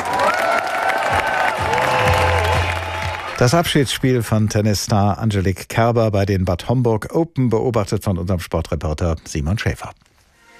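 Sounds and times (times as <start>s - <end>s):
stadium audience applause: 0.0s - 3.8s
speech: 3.4s - 10.1s.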